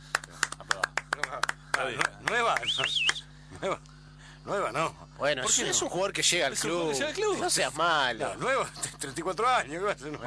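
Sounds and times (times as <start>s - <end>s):
applause: 0.0s - 3.2s
speech: 1.8s - 10.2s.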